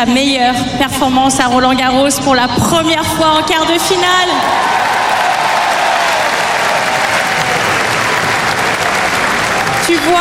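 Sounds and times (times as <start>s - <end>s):
speech: 0.0s - 4.8s, 9.9s - 10.2s
large stadium crowd applauding tennis player: 4.4s - 10.2s.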